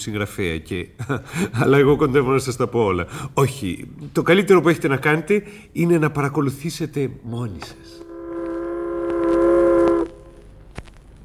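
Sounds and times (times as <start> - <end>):
speech: 0.0 - 8.0
ship's whistle blast: 8.0 - 10.4.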